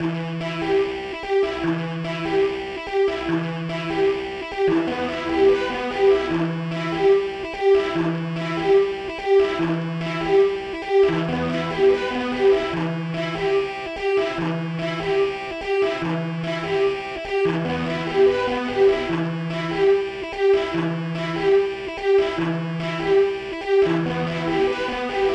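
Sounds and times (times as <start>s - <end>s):
strings loop: 0.0s - 25.3s.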